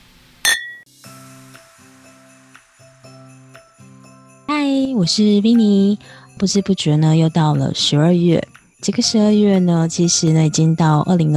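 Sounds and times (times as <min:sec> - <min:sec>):
glasses clinking in a toast: 0:00.5 - 0:00.9
speech: 0:04.6 - 0:11.3.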